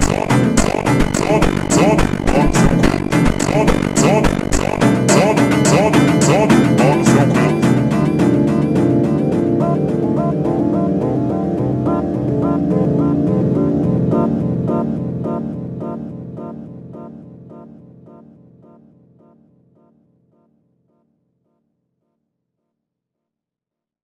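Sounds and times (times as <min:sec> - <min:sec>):
ultra slowed phonk music: 0:00.0 - 0:16.0.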